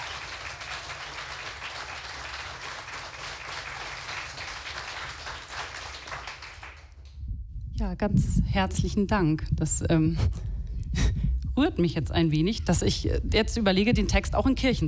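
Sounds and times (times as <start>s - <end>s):
audience applause: 0.0s - 7.0s
speech: 7.8s - 10.5s, 11.6s - 14.8s.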